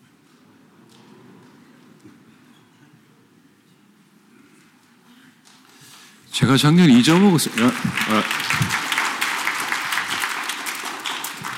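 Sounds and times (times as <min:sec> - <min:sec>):
speech: 0:06.4 - 0:08.8
audience applause: 0:06.6 - 0:11.5.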